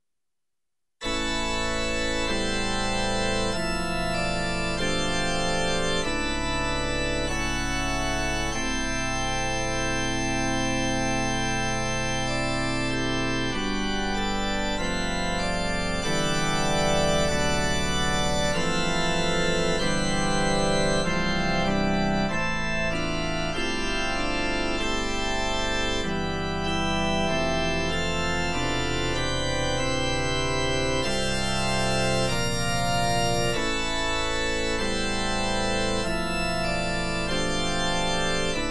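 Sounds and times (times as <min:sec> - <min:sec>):
organ pieces: 0:01.0 - 0:38.6.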